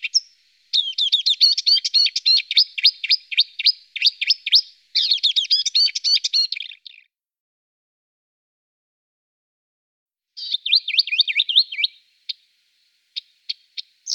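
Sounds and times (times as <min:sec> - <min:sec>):
marsh warbler song: 0:00.0 - 0:07.1, 0:10.4 - 0:14.1.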